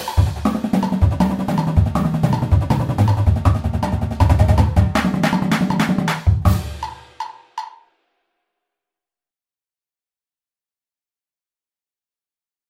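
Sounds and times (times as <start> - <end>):
drum paradiddles: 0.0 - 7.9.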